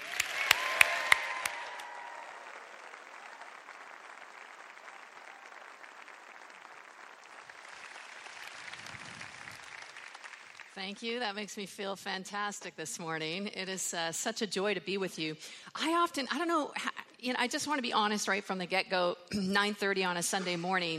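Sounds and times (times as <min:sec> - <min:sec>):
audience applause and cheering: 0:00.0 - 0:10.8
speech: 0:10.8 - 0:20.9.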